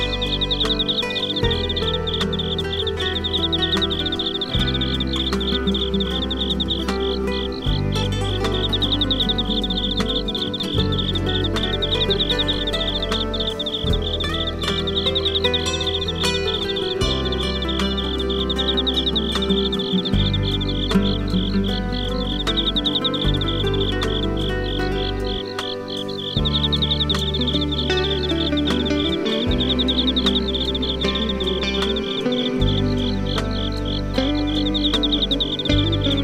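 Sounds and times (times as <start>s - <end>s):
insects: 0.0s - 36.2s
smooth guitar: 0.0s - 36.2s.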